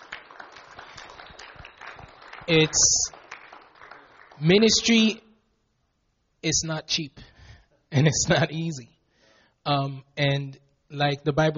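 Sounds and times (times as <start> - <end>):
crowd applause for church leadership: 0.0 - 5.0
speech: 2.5 - 3.2, 4.4 - 5.2, 6.4 - 7.3, 8.0 - 8.9, 9.6 - 11.5.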